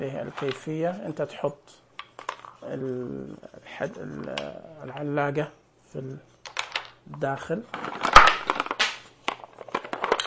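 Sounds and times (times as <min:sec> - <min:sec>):
speech: 0:00.0 - 0:01.8, 0:02.6 - 0:06.3, 0:07.0 - 0:08.0
piece of a plastic toy falling: 0:02.0 - 0:02.6, 0:06.4 - 0:07.0, 0:07.7 - 0:10.2.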